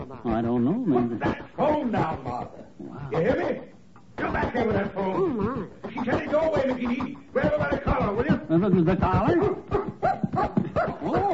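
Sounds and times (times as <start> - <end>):
speech: 0.1 - 9.8
cocker spaniel barking: 9.3 - 11.3.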